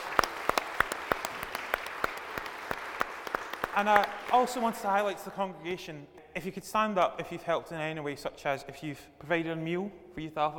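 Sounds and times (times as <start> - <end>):
audience applause: 0.0 - 5.2
speech: 3.8 - 10.5.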